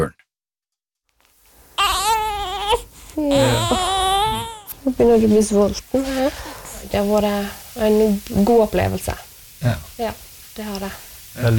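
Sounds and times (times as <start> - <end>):
newborn baby crying: 1.8 - 5.6
speech: 3.2 - 3.9, 4.8 - 11.5.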